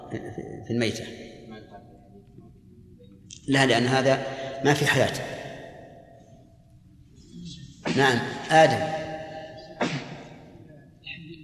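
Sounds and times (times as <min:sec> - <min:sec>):
faint hum: 0:00.0 - 0:11.4
speech: 0:00.1 - 0:01.4, 0:03.4 - 0:05.4, 0:07.9 - 0:09.0
sneeze: 0:07.8 - 0:08.2, 0:09.8 - 0:10.4.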